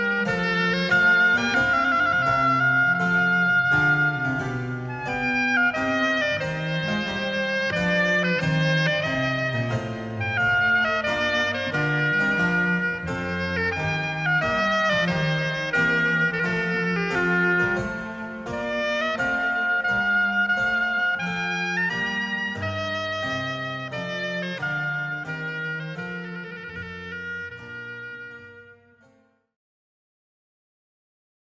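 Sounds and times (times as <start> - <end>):
harpsichord: 0.0 - 28.3
oboe: 0.0 - 29.1
violin: 0.0 - 29.2.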